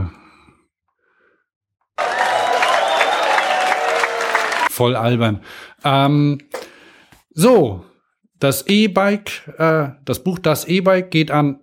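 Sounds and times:
applause sound effect: 2.0 - 4.7
speech: 4.8 - 6.6, 7.4 - 11.6.

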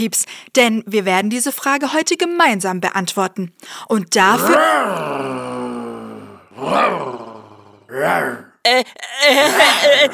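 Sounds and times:
speech: 0.0 - 5.5, 6.6 - 7.2, 7.9 - 10.1
tiger roaring: 4.4 - 8.5
laughter: 9.0 - 10.1.

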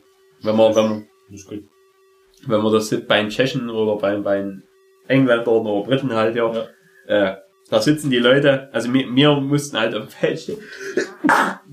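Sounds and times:
speech: 0.4 - 1.8, 2.4 - 11.7
sneeze: 11.2 - 11.7.

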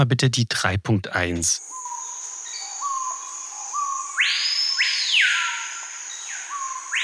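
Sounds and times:
speech: 0.0 - 1.8
high-pitched insect-like buzz: 1.6 - 7.0
melodious blackbird song: 1.6 - 7.0.

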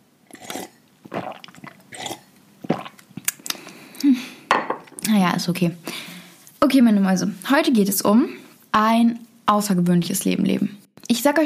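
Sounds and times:
person gulping kidney tea mixed with apple juice: 0.3 - 4.1
wet mouth clicks: 0.3 - 4.1
speech: 5.1 - 6.0, 6.7 - 11.4.

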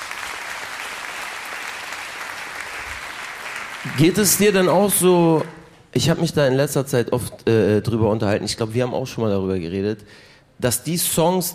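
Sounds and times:
applause: 0.0 - 5.7
speech: 3.9 - 11.5.

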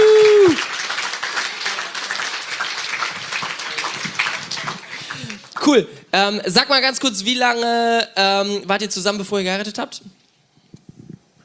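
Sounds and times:
audience applause for a couple: 0.0 - 5.8
speech: 5.7 - 10.2.

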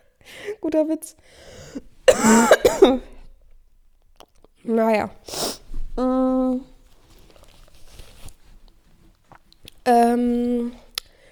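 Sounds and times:
speech: 0.6 - 3.1, 4.6 - 6.7, 9.8 - 10.8
coughing: 2.1 - 3.2.

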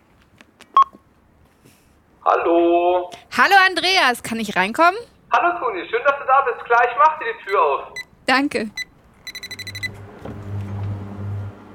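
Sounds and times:
speech: 2.3 - 8.8
smart home doorbell electronic beep: 9.3 - 10.0.

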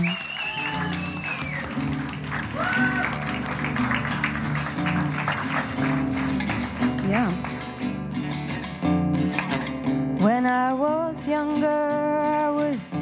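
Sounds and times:
audience applauding a performer: 0.0 - 8.0
music: 0.0 - 13.0.

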